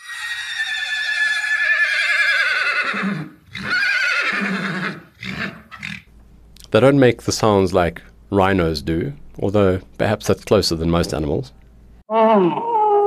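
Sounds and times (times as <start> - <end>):
horse whinnying: 0.0 - 6.1
horse neighing and snorting: 2.8 - 6.1
speech: 6.7 - 12.7.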